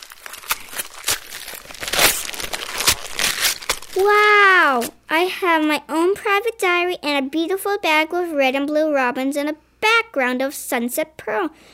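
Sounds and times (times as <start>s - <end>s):
wrapping paper crinkling as presents are unwrapped: 0.0s - 5.0s
speech: 4.0s - 4.2s, 4.8s - 11.7s.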